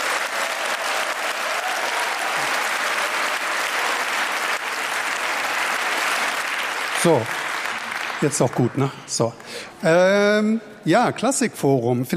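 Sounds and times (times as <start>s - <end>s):
audience applause: 0.0s - 9.4s
speech: 7.0s - 7.4s, 8.2s - 12.1s.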